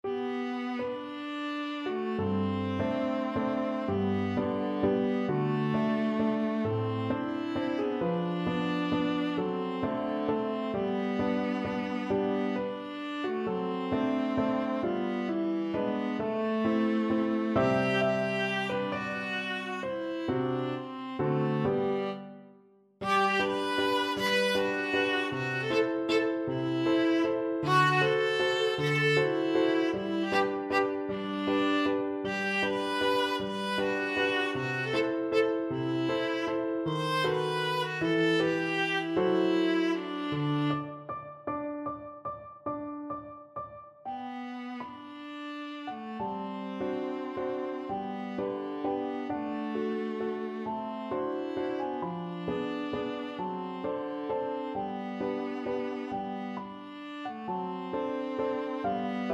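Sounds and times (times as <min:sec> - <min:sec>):
viola: 0:00.0 - 0:41.8, 0:44.1 - 0:59.3.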